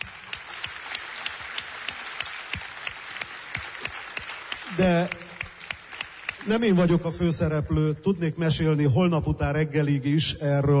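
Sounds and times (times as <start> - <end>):
applause: 0.0 - 7.3
speech: 4.8 - 5.2, 6.5 - 10.7.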